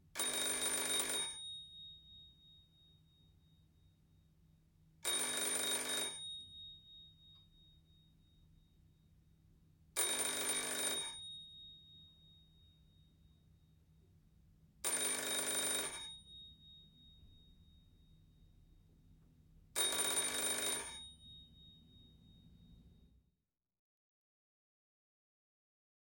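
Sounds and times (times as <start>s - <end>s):
household telephone ringing: 0.2s - 1.6s, 5.0s - 6.5s, 10.0s - 11.4s, 14.8s - 16.5s, 19.8s - 22.3s.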